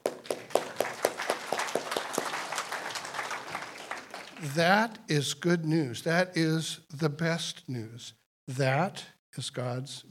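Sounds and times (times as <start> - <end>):
clapping: 0.0 - 4.5
speech: 4.4 - 10.0.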